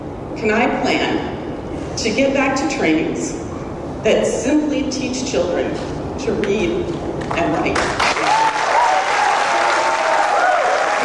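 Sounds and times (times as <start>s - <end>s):
speech: 0.4s - 1.3s, 2.1s - 3.4s, 4.0s - 8.1s
crowd cheering and applauding: 8.0s - 11.0s.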